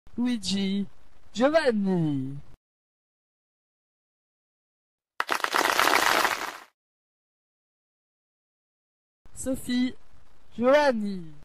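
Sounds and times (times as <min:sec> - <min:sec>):
speech: 0:00.2 - 0:02.5, 0:09.4 - 0:10.0, 0:10.6 - 0:11.4
audience applauding the circus artists: 0:05.2 - 0:06.7.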